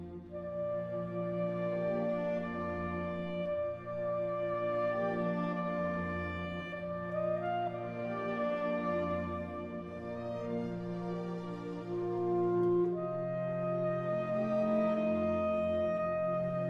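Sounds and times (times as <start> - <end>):
saxophone concerto: 0.3 - 16.6.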